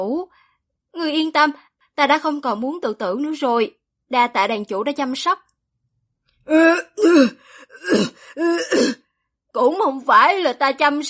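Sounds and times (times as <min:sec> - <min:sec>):
speech: 0:00.0 - 0:00.4, 0:01.0 - 0:05.4, 0:06.4 - 0:11.0
nervous throat-clearing coughs: 0:07.0 - 0:09.0.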